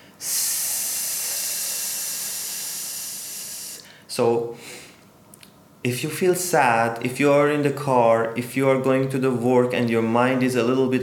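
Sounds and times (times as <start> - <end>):
voice making a long hissing SSS sound: 0.0 - 3.9
speech: 4.2 - 4.8, 5.8 - 11.0.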